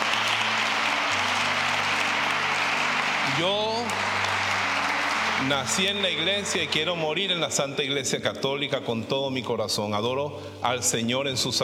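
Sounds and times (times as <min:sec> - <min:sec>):
audience applause: 0:00.0 - 0:07.7
speech: 0:03.4 - 0:04.1, 0:05.4 - 0:11.6.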